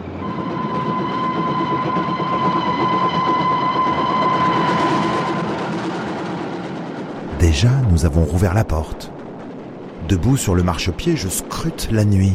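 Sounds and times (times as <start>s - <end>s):
high whine of train on rails: 0.0s - 10.4s
train rumbling along rails: 0.0s - 12.3s
speech: 7.6s - 9.2s, 10.1s - 12.3s.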